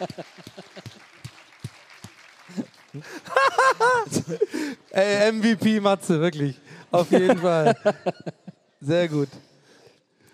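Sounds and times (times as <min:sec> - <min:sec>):
speech: 0:00.0 - 0:00.5, 0:03.0 - 0:09.4
laughter: 0:00.0 - 0:01.2, 0:02.5 - 0:05.1, 0:06.9 - 0:08.7
scattered handclaps from a small audience: 0:00.0 - 0:04.2.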